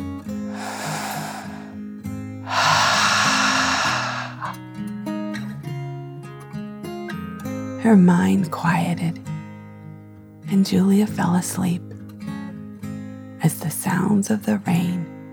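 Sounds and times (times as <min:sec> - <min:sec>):
deep breath in and out: 0:00.5 - 0:01.8, 0:02.4 - 0:04.6
speech: 0:07.8 - 0:09.3, 0:10.5 - 0:11.9, 0:14.0 - 0:15.1.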